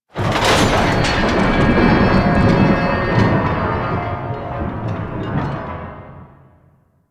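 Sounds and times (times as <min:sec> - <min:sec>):
gate door closing: 0:00.2 - 0:05.5.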